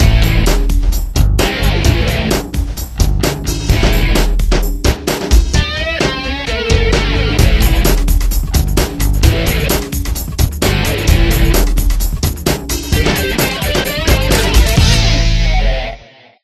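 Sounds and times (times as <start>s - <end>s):
cheerleaders dance music: 0.0s - 16.0s.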